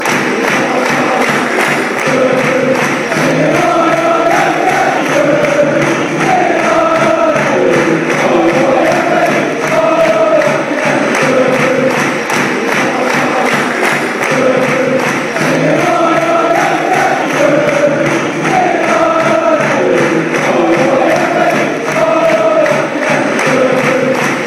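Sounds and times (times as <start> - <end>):
person singing: 0.0 - 24.4.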